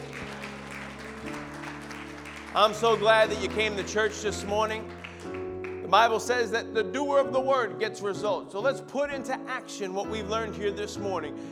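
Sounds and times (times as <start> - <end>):
audience applause: 0.0 - 6.1
speech: 2.6 - 11.5.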